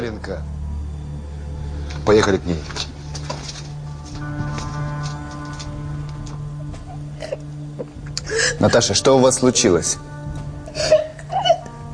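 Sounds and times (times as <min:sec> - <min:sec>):
speech: 0:00.1 - 0:00.6, 0:02.0 - 0:02.9, 0:08.6 - 0:10.1
woman crying and sobbing: 0:06.8 - 0:09.0, 0:10.6 - 0:11.9.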